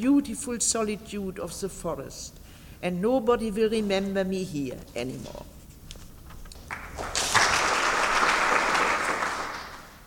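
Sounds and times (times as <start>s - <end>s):
speech: 0.0s - 5.6s
audience applause: 6.7s - 10.0s.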